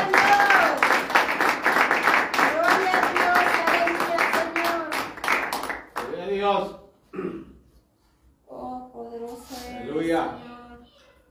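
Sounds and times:
audience applause: 0.0s - 6.0s.

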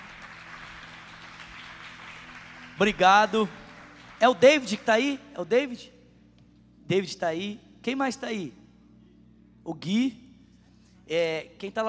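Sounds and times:
auditorium audience applauding: 0.0s - 5.2s
speech: 2.8s - 3.6s, 4.2s - 6.0s, 6.9s - 8.6s, 9.6s - 10.2s, 11.1s - 11.8s.

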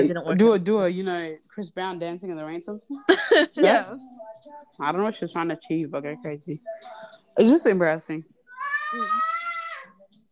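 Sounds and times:
speech: 0.0s - 9.3s
child screaming: 8.6s - 9.9s.

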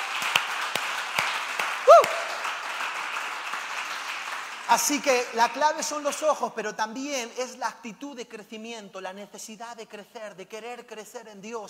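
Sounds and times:
audience applause: 0.0s - 5.7s
rising-and-falling vocal whoop: 1.8s - 2.4s
speech: 4.7s - 11.6s.

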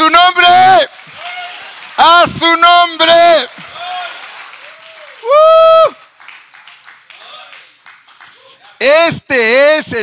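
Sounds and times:
audience clapping: 0.0s - 9.2s
speech: 2.0s - 3.7s, 8.8s - 10.0s.

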